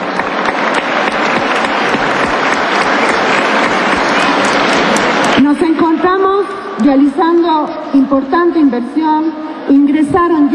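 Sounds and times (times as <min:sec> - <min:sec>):
audience applause: 0:00.0 - 0:05.5
speech: 0:06.9 - 0:10.5.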